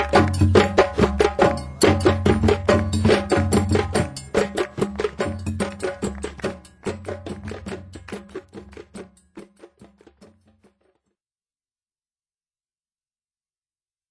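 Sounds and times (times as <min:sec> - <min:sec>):
dundun drum: 0:00.0 - 0:11.0.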